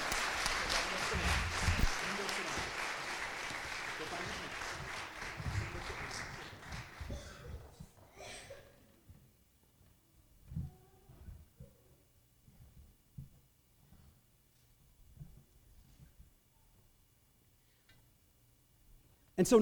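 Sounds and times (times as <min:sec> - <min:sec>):
audience applause: 0:00.0 - 0:07.8.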